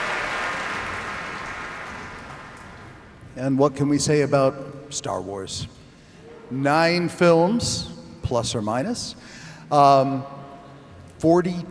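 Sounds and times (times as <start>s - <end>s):
audience applause for an orchestra: 0.0s - 3.0s
speech: 3.4s - 5.8s, 6.5s - 10.4s, 11.2s - 11.7s.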